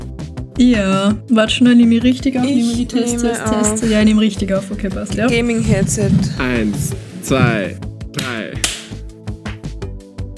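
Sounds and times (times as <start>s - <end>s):
speech: 0.6s - 7.9s
people clapping hands: 5.3s - 9.7s.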